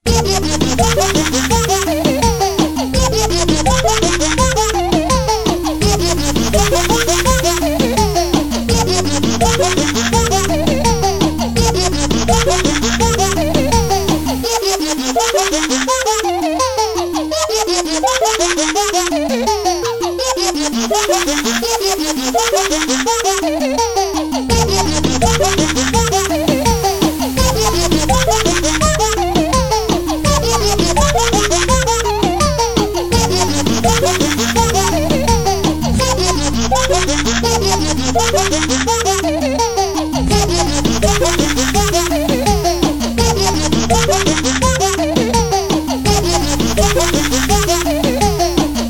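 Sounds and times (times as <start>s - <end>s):
lullaby remix: 0.0s - 48.8s
baby laughing: 0.1s - 48.8s.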